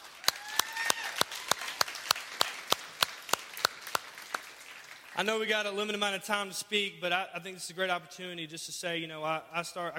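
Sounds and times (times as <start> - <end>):
hand clap: 0.0 - 5.2
speech: 5.2 - 9.9.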